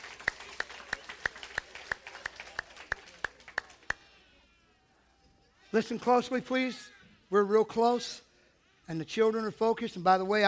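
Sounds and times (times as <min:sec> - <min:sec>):
audience clapping in unison: 0:00.0 - 0:04.1
murmuring background: 0:00.0 - 0:10.4
speech: 0:05.7 - 0:08.2, 0:08.9 - 0:10.4.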